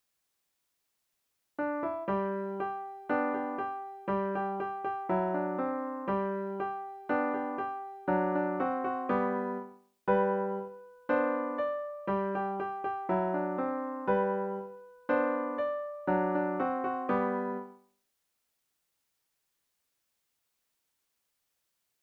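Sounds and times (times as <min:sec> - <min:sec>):
folk tune played on piano: 0:01.6 - 0:17.8.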